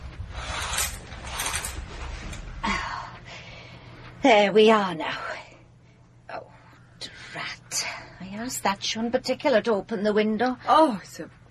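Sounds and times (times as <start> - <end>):
curtains being drawn back, runners sliding along a rail: 0.0 - 2.4
speech: 4.2 - 5.3, 8.3 - 11.4.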